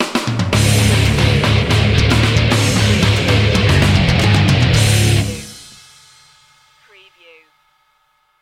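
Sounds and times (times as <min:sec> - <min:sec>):
disturbed skater music sting: 0:00.5 - 0:06.3.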